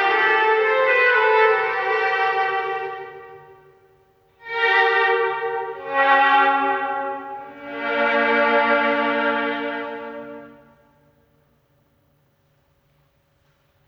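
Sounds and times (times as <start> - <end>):
violin and viola duo suite: 0.0 - 3.8, 4.4 - 10.9.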